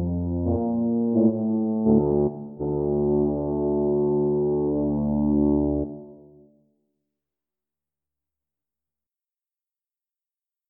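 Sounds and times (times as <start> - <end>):
tuba: 0.0 - 6.6.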